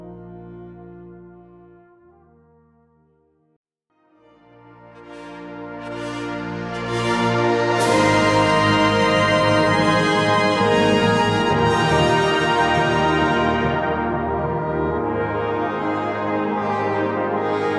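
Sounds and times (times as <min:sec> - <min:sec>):
fanfare: 0:05.0 - 0:17.7.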